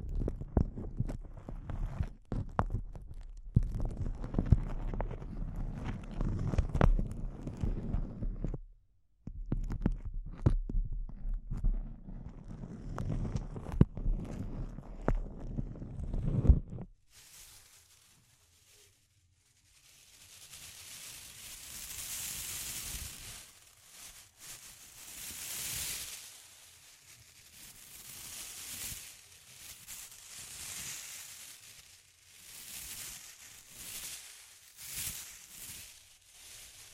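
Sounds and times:
intense crinkles: 0:00.0 - 0:08.7, 0:09.3 - 0:36.9.

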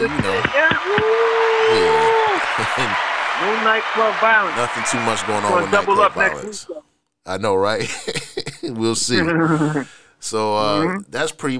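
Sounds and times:
speech: 0:00.0 - 0:00.6, 0:02.9 - 0:11.5
applause: 0:00.0 - 0:06.6.

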